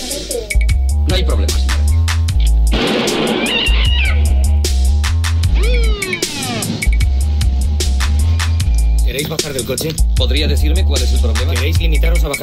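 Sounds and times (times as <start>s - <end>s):
pounding rhythmic music: 0.0s - 12.4s
speech: 1.3s - 1.6s, 9.5s - 12.4s
cat meowing: 3.4s - 4.4s, 5.5s - 6.2s.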